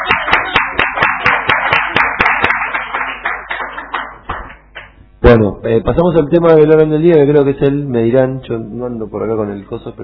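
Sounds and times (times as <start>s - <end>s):
audience applause: 0.0s - 4.9s
speech: 5.3s - 10.0s.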